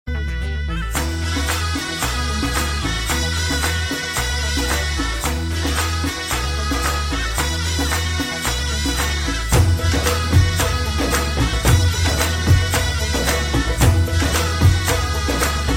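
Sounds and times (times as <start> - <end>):
traditional music: 0.1 - 15.7.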